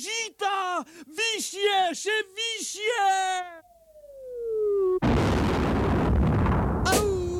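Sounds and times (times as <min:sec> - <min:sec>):
speech: 0:00.3 - 0:03.7
descending whistle: 0:03.6 - 0:05.0
loud explosion: 0:05.0 - 0:07.3.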